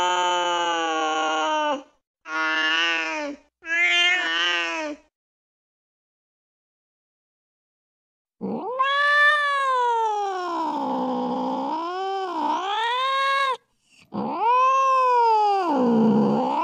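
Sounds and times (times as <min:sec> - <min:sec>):
cat meowing: 0:00.0 - 0:05.0, 0:08.4 - 0:16.6.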